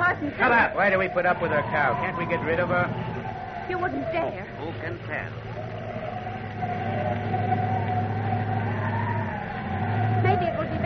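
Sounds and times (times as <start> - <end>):
low constant rumble: 0.0 - 10.8
moaning howling wind: 0.0 - 10.8
speech: 0.2 - 5.6.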